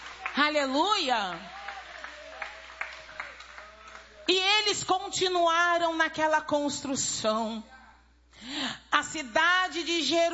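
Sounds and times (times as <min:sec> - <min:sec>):
congregation clapping in a church service: 0:00.0 - 0:04.4
speech: 0:00.4 - 0:01.6, 0:04.3 - 0:07.7, 0:08.4 - 0:10.3.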